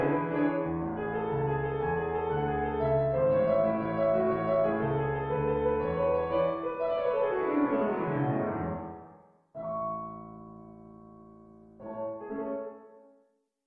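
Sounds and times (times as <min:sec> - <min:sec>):
fugue in A major: 0:00.0 - 0:10.2.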